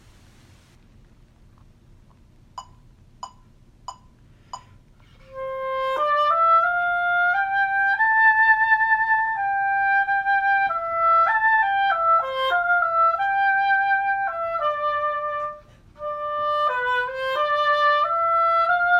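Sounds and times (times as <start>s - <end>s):
oboe: 5.0s - 18.9s.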